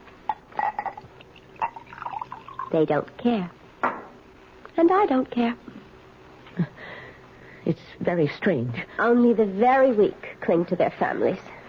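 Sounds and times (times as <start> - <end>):
wine glugging into a glass: 0.5 - 2.8
speech: 2.7 - 3.6, 4.8 - 5.7, 7.7 - 11.5.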